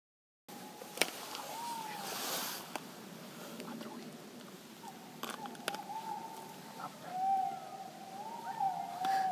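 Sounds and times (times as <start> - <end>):
owl hooting: 0.6 - 2.3, 4.8 - 9.3.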